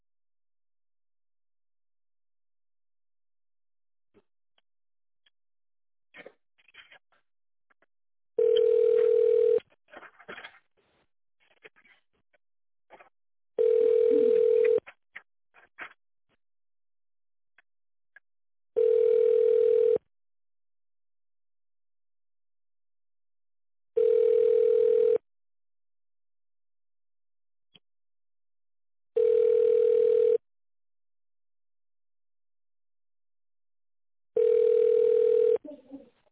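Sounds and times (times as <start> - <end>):
telephone ringing tone: 8.4 - 9.6, 13.6 - 14.8, 18.8 - 20.0, 24.0 - 25.2, 29.2 - 30.4, 34.4 - 35.6.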